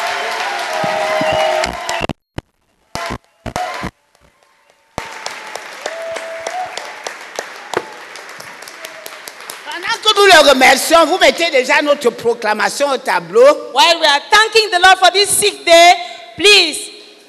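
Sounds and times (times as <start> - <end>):
congregation clapping during a prayer gathering: 0.0 - 2.2, 2.9 - 10.6
speech: 10.4 - 16.8.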